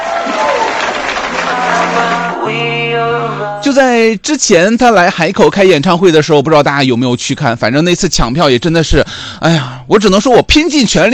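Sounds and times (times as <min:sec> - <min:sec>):
applause: 0:00.0 - 0:02.4
cheering: 0:00.0 - 0:02.5
steady tonal musical chord: 0:01.4 - 0:03.7
speech: 0:02.5 - 0:11.1.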